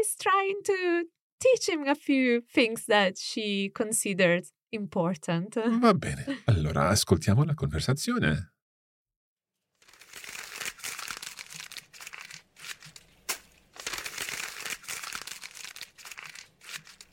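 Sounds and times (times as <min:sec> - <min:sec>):
speech: 0:00.0 - 0:08.6
misprinted photocopy sheets crumpled by hand: 0:09.8 - 0:17.1.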